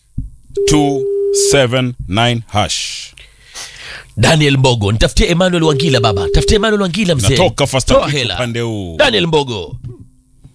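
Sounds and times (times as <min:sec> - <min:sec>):
speech: 0:00.6 - 0:03.3, 0:03.9 - 0:10.0
phone dial pad beep: 0:05.7 - 0:06.8.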